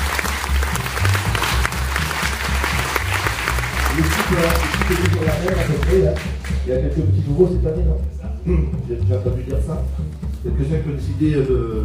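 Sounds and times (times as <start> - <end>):
audience applause: 0.0 - 6.6
speech: 4.0 - 11.8.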